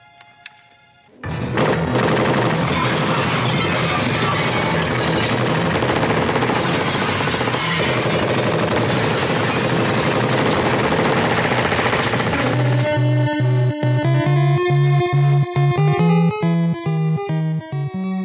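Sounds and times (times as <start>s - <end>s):
loud harsh rapid-fire noise bursts: 1.2s - 13.0s
NES video game chiptune melody over buzzy bass: 12.2s - 18.2s.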